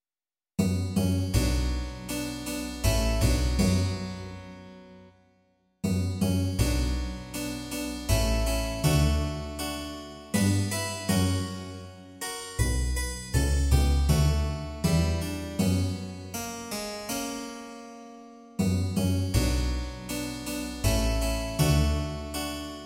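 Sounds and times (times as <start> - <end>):
double bass: 0.6 - 4.6, 5.8 - 16.7, 18.6 - 22.8
harpsichord: 0.6 - 5.0, 5.8 - 22.8.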